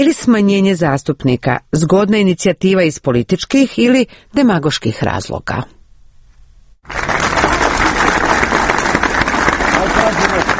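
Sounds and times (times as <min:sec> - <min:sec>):
speech: 0:00.0 - 0:05.8, 0:06.9 - 0:07.2
party supporters applauding in central Belgrade: 0:06.9 - 0:10.5.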